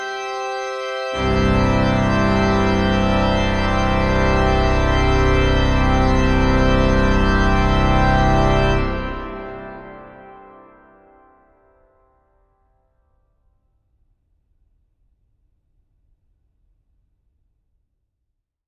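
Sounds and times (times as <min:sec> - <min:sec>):
organist playing a fanfare postlude: 0:00.0 - 0:11.4.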